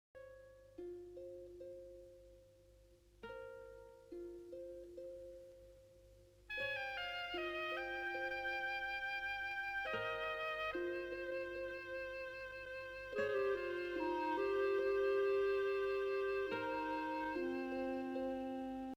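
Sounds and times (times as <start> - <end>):
tune: 6.5 - 18.9.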